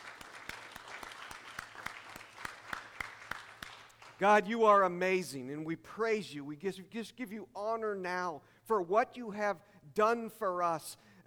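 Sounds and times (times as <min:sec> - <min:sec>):
audience applause: 0:00.0 - 0:04.2
speech: 0:04.2 - 0:11.2.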